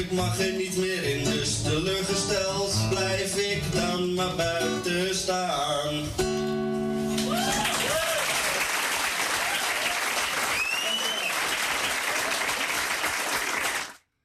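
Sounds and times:
speech: 0.1 - 6.4
crowd cheering and whooping: 7.1 - 12.7
enthusiastic audience applause: 7.2 - 14.0.

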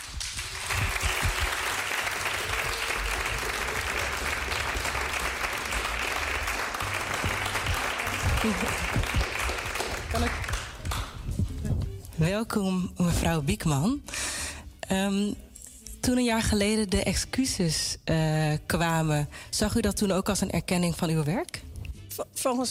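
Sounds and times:
audience applause: 0.0 - 11.2
speech: 8.4 - 8.9, 12.3 - 14.1, 14.9 - 15.4, 16.0 - 21.6, 22.2 - 22.6.

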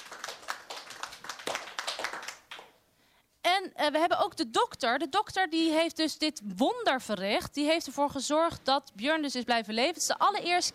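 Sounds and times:
audience applause: 0.0 - 2.7
speech: 3.6 - 10.7.

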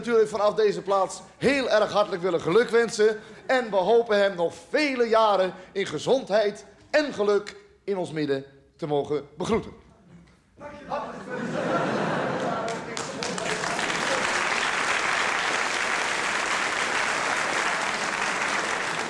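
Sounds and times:
speech: 0.0 - 9.8
laughter: 10.9 - 14.6
audience applause: 12.0 - 19.0.

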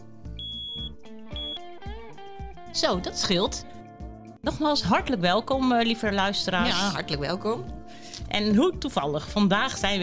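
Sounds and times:
home smoke detector beeping because of a low battery: 0.4 - 1.6
speech: 2.8 - 3.7, 4.4 - 10.0.

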